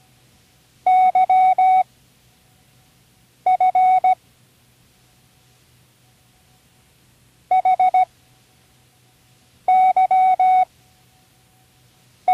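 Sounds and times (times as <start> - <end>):
morse code signal: 0.9 - 1.8, 3.5 - 4.2, 7.5 - 8.1, 9.7 - 10.7.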